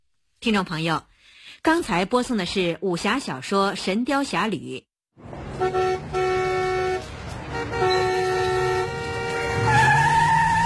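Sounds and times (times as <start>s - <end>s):
speech: 0.4s - 4.9s, 5.6s - 6.1s
tires skidding: 5.2s - 10.6s
car horn blaring: 5.5s - 10.6s.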